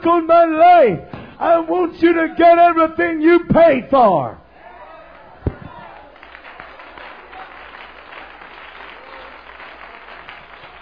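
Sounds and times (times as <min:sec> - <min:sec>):
speech: 0:00.0 - 0:04.4
audience clapping hands: 0:05.5 - 0:10.7.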